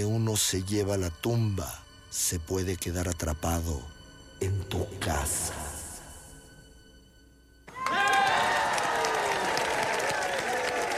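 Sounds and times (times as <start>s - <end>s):
speech: 0.0s - 5.7s
audience applause: 7.7s - 10.9s.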